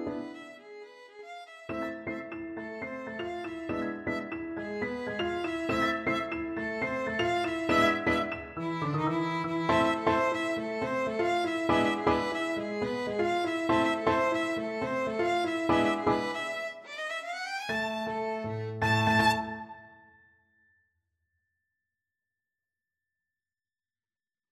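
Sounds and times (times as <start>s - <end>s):
salsa violin music: 0.0s - 2.8s, 3.4s - 19.9s.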